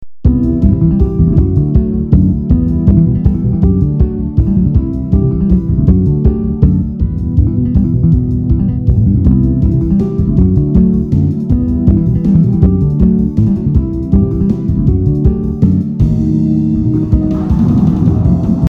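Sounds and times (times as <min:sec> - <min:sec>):
bassline: 0:00.0 - 0:18.6.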